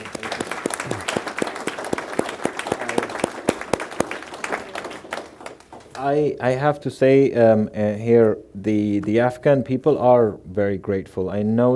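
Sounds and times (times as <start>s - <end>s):
audience applause: 0.0s - 6.0s
speech: 6.0s - 11.7s.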